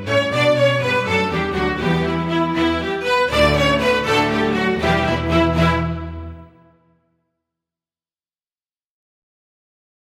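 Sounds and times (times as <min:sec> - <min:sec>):
orchestral strings playing a jig: 0:00.0 - 0:06.7.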